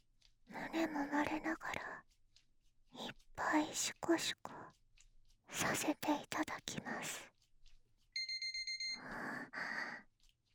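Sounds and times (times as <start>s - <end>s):
speech: 0.7s - 1.8s, 3.6s - 4.6s, 5.6s - 7.3s
digital timer alarm beeping: 8.2s - 9.2s.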